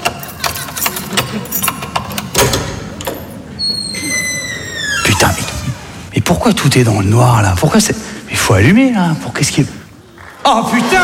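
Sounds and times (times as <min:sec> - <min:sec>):
keys rattling and scraping in a lock: 0:00.0 - 0:03.4
speech: 0:01.3 - 0:01.7, 0:06.3 - 0:09.8, 0:10.5 - 0:11.0
thud of a door being opened: 0:02.3 - 0:06.1.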